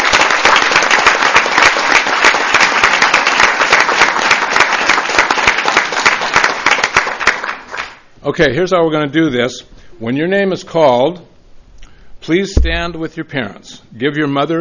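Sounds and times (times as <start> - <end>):
audience applause: 0.0 - 8.0
speech: 8.3 - 11.3, 12.2 - 14.5.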